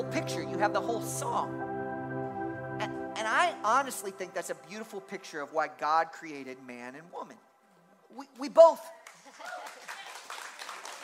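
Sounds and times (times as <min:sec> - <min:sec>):
speech: 0:00.0 - 0:01.6, 0:02.8 - 0:07.5, 0:08.1 - 0:10.0
audience applauding: 0:09.0 - 0:11.0.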